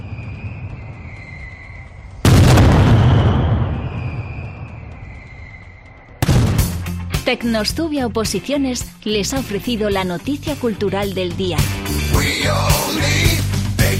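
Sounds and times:
mascletà firecracker barrage explosions: 0:01.9 - 0:05.4, 0:06.2 - 0:07.0
speech: 0:07.3 - 0:13.4.

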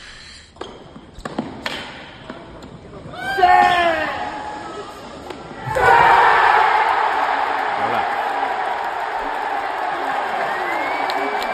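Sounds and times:
huge crowd of 15,000 Italians cheering their idol's win: 0:03.2 - 0:11.5.

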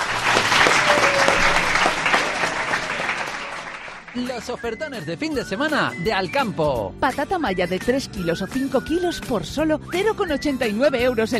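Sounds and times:
applause: 0:00.0 - 0:04.8
speech: 0:04.2 - 0:11.3.

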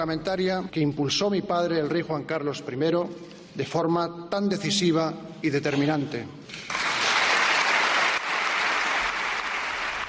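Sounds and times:
speech: 0:00.0 - 0:06.7
applause in parliament chamber: 0:06.6 - 0:10.0.

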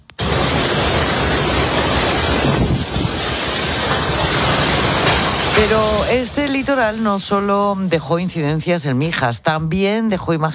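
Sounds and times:
strong storm wind on the coast: 0:00.2 - 0:07.9
speech: 0:05.6 - 0:10.5.

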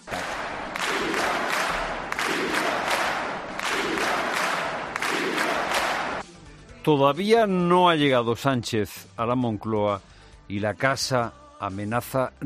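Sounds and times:
loud crowd chanting in unison: 0:00.0 - 0:06.2
speech: 0:06.8 - 0:12.4.

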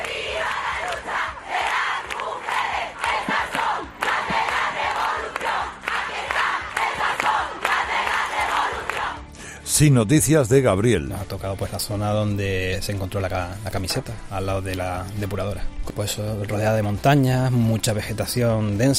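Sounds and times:
crowd of women protesters marching in the street chanting: 0:00.0 - 0:09.3
speech: 0:09.8 - 0:18.9.

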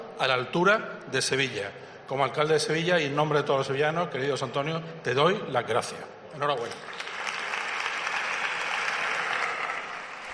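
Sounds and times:
speech: 0:00.2 - 0:07.1
audience applause: 0:06.6 - 0:10.3.

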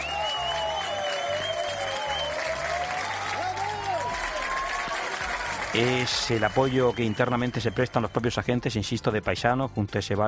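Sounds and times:
high whistles: 0:00.0 - 0:02.6, 0:05.8 - 0:08.2
police officers applauding: 0:00.0 - 0:08.2
speech: 0:05.7 - 0:10.2.

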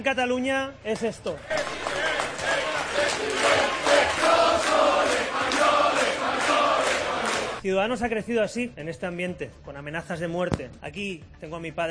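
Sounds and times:
speech: 0:00.0 - 0:05.6, 0:07.6 - 0:11.8
crowd of attendees shouting and chanting at a political rally in Barcelona: 0:01.4 - 0:07.6.

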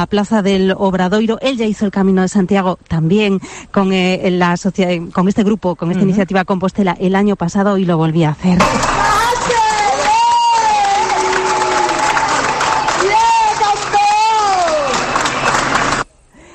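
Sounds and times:
speech: 0:00.0 - 0:09.0
applause in the Plaza del Obradoiro: 0:08.6 - 0:16.1.

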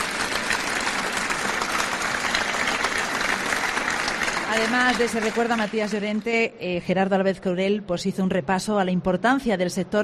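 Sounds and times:
crowd applauding: 0:00.0 - 0:06.4
speech: 0:04.6 - 0:10.0.

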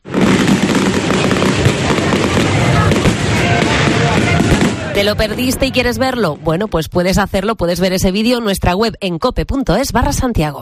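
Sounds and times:
fireworks display bangs: 0:00.0 - 0:07.2
speech: 0:05.0 - 0:10.6.

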